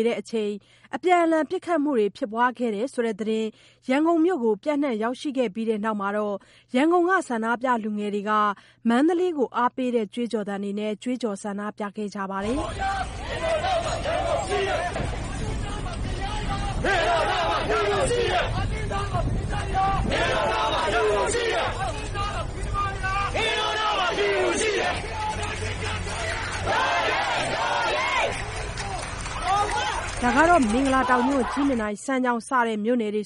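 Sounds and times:
speech: 0.0s - 13.4s, 16.8s - 21.8s, 29.6s - 33.2s
protesters marching in Mandalay, Myanmar, shouting slogans: 12.4s - 31.8s.

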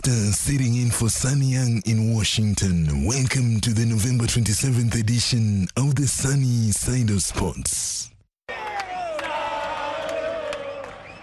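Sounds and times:
speech: 0.1s - 8.1s
Argentine football fans chanting: 8.5s - 11.2s.

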